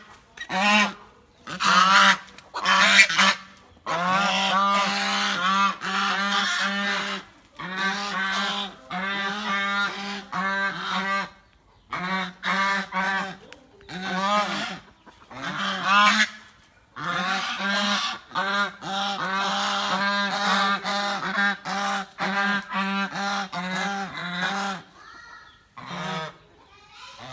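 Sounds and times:
goose honking: 0:00.0 - 0:24.9, 0:25.8 - 0:26.4, 0:27.2 - 0:27.3.

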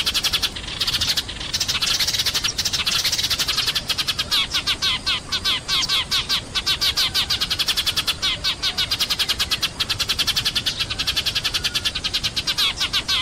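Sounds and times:
sparrow chattering rattle: 0:00.0 - 0:13.2.

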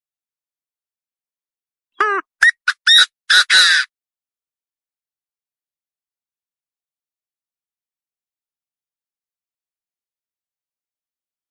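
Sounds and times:
partridge calling: 0:02.0 - 0:03.9.

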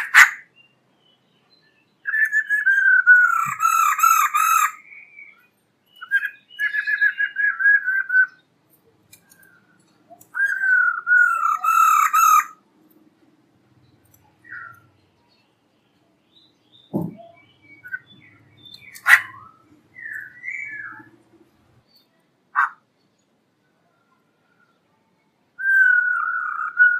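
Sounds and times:
black-throated laughingthrush song of whistles and a harsh burst: 0:02.0 - 0:08.4, 0:10.2 - 0:12.4, 0:16.8 - 0:21.2, 0:25.6 - 0:26.9.

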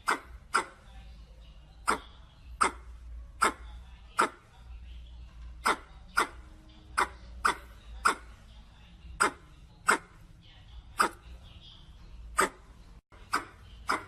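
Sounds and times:
red squirrel chuck calls: 0:00.0 - 0:00.8, 0:01.8 - 0:03.6, 0:05.6 - 0:08.5, 0:09.2 - 0:10.2, 0:13.2 - 0:14.0.

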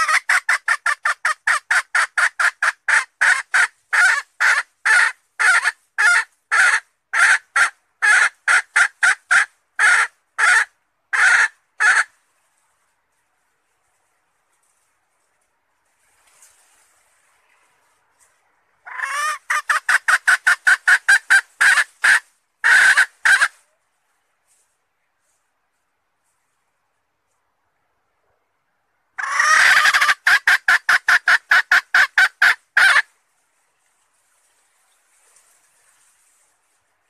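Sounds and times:
Red junglefowl hen clucking: 0:00.0 - 0:12.1, 0:18.8 - 0:23.6, 0:29.2 - 0:33.1.

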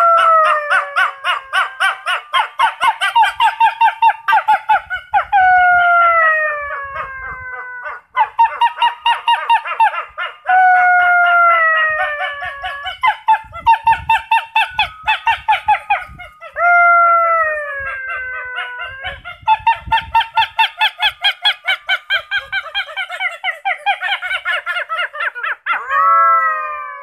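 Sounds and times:
wolves yelping and howling in chorus: 0:00.0 - 0:27.0.

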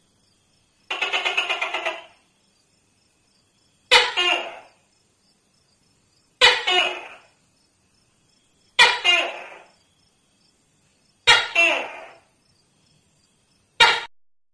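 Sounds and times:
Tokay gecko call: 0:00.9 - 0:02.3, 0:03.8 - 0:04.9, 0:06.4 - 0:07.4, 0:08.6 - 0:09.9, 0:11.2 - 0:12.4, 0:13.7 - 0:14.1.

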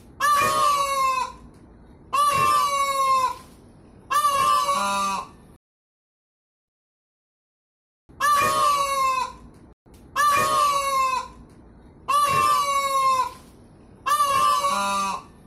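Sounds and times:
peafowl braying calls: 0:00.2 - 0:01.4, 0:02.1 - 0:03.5, 0:04.1 - 0:05.4, 0:08.2 - 0:09.5, 0:10.2 - 0:11.4, 0:12.1 - 0:15.4.

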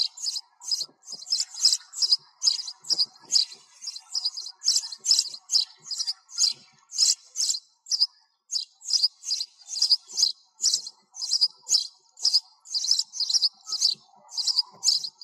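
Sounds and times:
sparrow chirping: 0:00.0 - 0:15.2.

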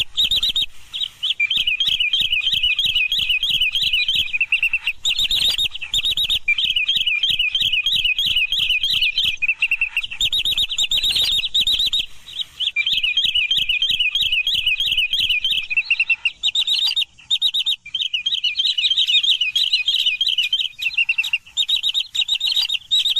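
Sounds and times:
Green sandpiper calls of high clear notes: 0:00.0 - 0:23.1.

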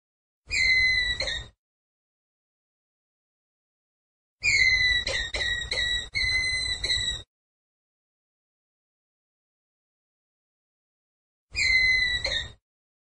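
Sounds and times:
ground squirrel whistled call: 0:00.5 - 0:01.5, 0:04.4 - 0:07.3, 0:11.6 - 0:12.6.

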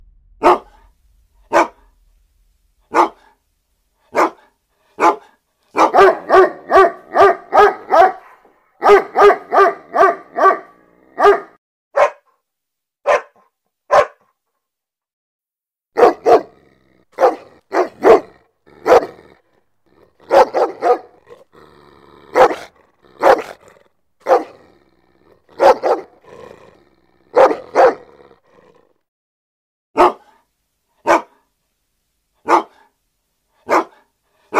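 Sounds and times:
German Shepherd barking: 0:00.4 - 0:00.8, 0:01.5 - 0:01.9, 0:02.9 - 0:03.4, 0:04.1 - 0:12.4, 0:13.0 - 0:14.4, 0:16.0 - 0:16.6, 0:17.2 - 0:19.4, 0:20.0 - 0:21.4, 0:22.3 - 0:26.4, 0:27.2 - 0:28.3, 0:30.0 - 0:31.5, 0:32.4 - 0:33.0, 0:33.6 - 0:34.5.

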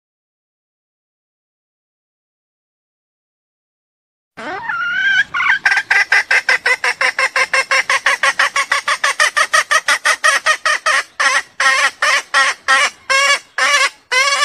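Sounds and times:
junglefowl clucking: 0:04.4 - 0:14.4.

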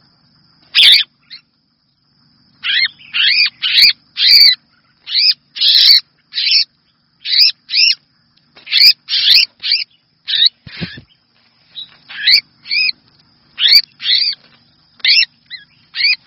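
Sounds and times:
Red-whiskered bulbul grating chirps: 0:00.6 - 0:01.5, 0:02.4 - 0:16.2.

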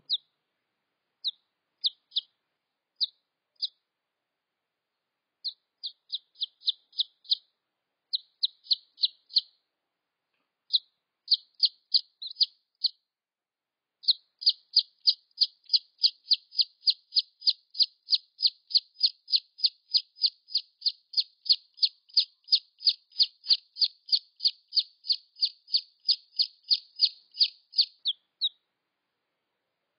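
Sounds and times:
red junglefowl chick peeps: 0:00.0 - 0:00.3, 0:01.2 - 0:02.4, 0:03.0 - 0:03.8, 0:05.4 - 0:07.5, 0:08.1 - 0:09.6, 0:10.7 - 0:13.0, 0:14.0 - 0:28.6.

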